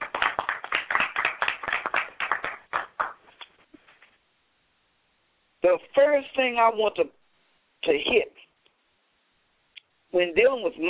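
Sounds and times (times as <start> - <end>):
audience applause welcoming a guest on stage: 0.0 - 3.2
speech: 5.6 - 7.2, 7.9 - 8.4, 10.1 - 10.8.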